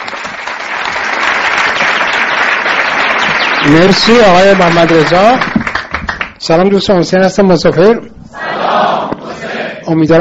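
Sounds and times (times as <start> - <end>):
audience applause at a meeting: 0.0 - 6.4
speech: 3.7 - 5.5, 6.4 - 8.1, 9.9 - 10.1.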